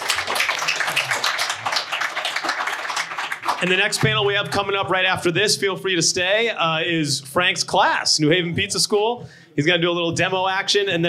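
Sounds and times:
crowd applauding: 0:00.0 - 0:04.4
speech: 0:03.6 - 0:11.0.

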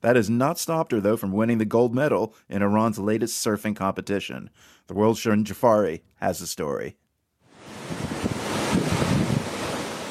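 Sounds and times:
speech: 0:00.0 - 0:07.0
ocean waves breaking in the Gulf: 0:07.5 - 0:10.0.

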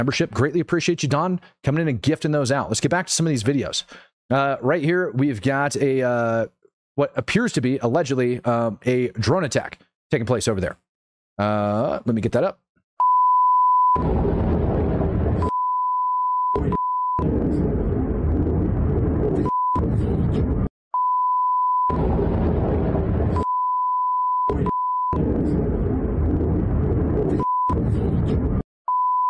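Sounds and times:
speech: 0:00.0 - 0:10.8, 0:11.4 - 0:12.6
censor bleeps over cursing in video: 0:13.0 - 0:14.0, 0:15.4 - 0:17.3, 0:21.0 - 0:22.0, 0:28.9 - 0:29.2
rough rumbling noise: 0:14.0 - 0:15.5, 0:16.6 - 0:20.7, 0:21.9 - 0:23.5, 0:24.6 - 0:28.6.

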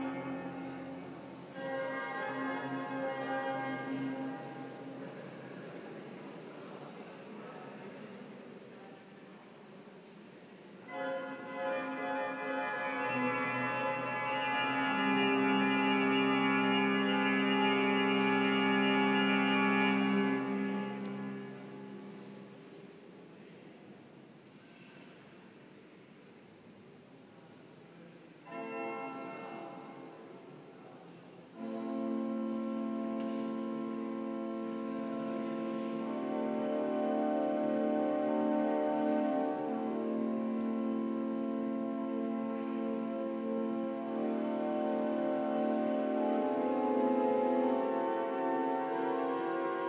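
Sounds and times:
organ practice in Chartres Cathedral: 0:00.0 - 0:06.0, 0:10.9 - 0:22.9, 0:28.4 - 0:30.3, 0:31.5 - 0:49.8.

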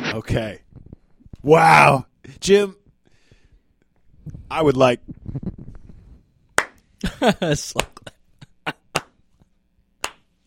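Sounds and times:
speech: 0:00.2 - 0:00.6, 0:01.4 - 0:02.8, 0:04.5 - 0:05.6, 0:07.0 - 0:07.9
slow sharp claps: 0:06.6 - 0:06.9, 0:08.9 - 0:10.3.

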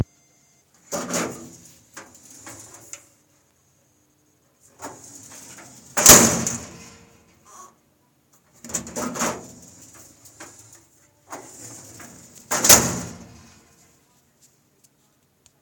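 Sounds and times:
filing cabinet: 0:00.8 - 0:03.1, 0:04.7 - 0:07.7, 0:08.6 - 0:13.9.

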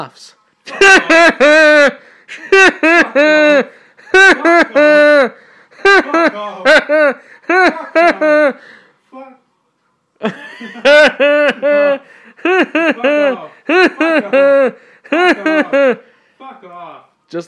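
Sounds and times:
person laughing: 0:00.7 - 0:08.6, 0:10.2 - 0:16.0.

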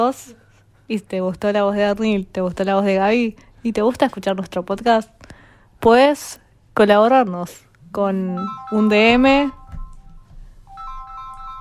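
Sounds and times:
speech: 0:00.0 - 0:09.6
melodic phone ringtone: 0:08.4 - 0:11.5.

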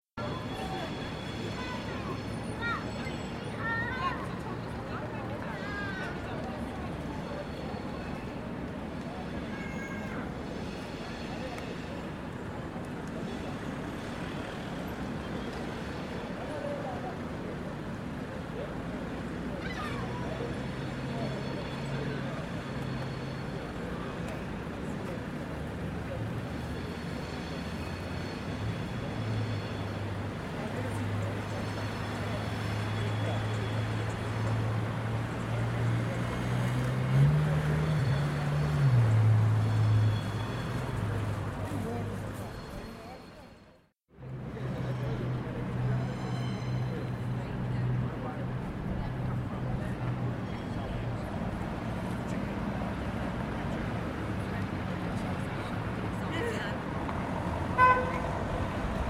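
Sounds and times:
pedestrians near Birmingham New Street station: 0:00.2 - 0:59.0
traffic near Birmingham New Street station: 0:00.2 - 0:59.0.

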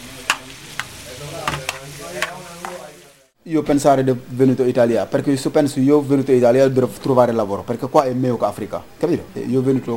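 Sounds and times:
sharp scraping stirs in the pan: 0:00.0 - 0:02.9
onions and zucchini frying in oil with salt: 0:00.0 - 0:03.4
speech: 0:03.5 - 0:09.9.

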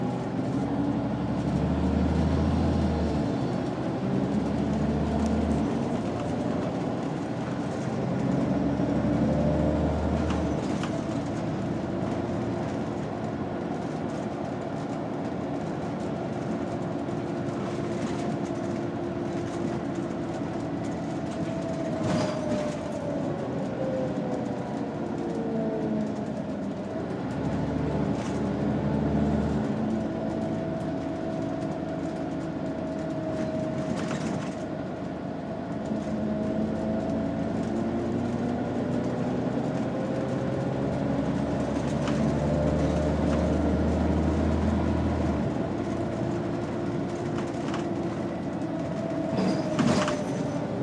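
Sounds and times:
empty bus to Leeds ambience: 0:00.0 - 0:50.8.

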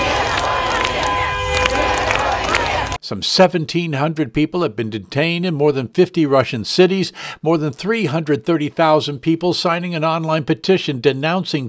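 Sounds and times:
anti-war protest crowd in Moscow chanting no to war: 0:00.0 - 0:03.0
speech: 0:03.1 - 0:11.6.

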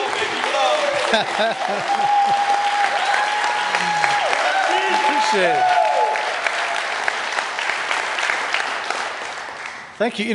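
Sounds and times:
laughter: 0:00.0 - 0:02.6
audience applause: 0:00.0 - 0:10.0
speech: 0:01.1 - 0:02.6, 0:05.3 - 0:05.8, 0:10.0 - 0:10.3.

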